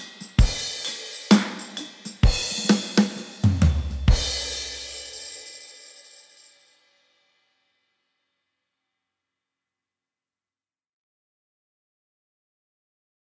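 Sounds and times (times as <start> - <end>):
power rock drums: 0.0 - 5.2.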